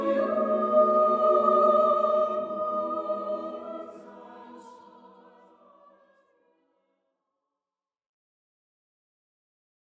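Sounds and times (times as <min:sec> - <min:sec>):
chamber singers choir singing: 0:00.0 - 0:06.2.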